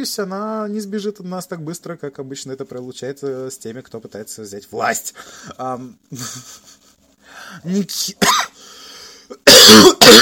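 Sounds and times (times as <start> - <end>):
speech: 0.0 - 6.8, 7.4 - 8.5, 9.3 - 10.2
person coughing after choking: 8.2 - 8.6, 9.3 - 10.2
faint wheezy breath: 8.6 - 9.4.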